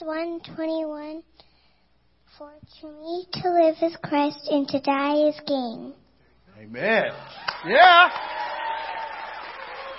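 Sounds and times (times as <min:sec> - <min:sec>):
speech: 0:00.0 - 0:01.5, 0:02.3 - 0:06.0, 0:06.6 - 0:08.4
audience cheering and clapping: 0:07.1 - 0:09.9.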